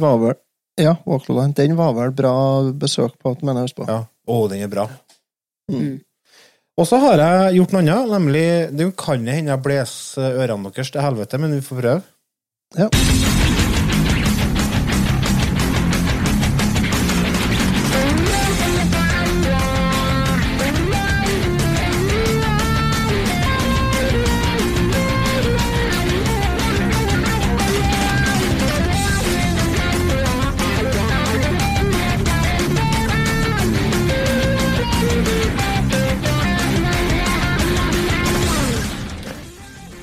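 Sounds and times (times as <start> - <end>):
speech: 0.0 - 5.1, 5.7 - 6.1, 6.8 - 12.1, 12.7 - 13.4
energetic video game soundtrack music with driving percussion: 13.0 - 40.0.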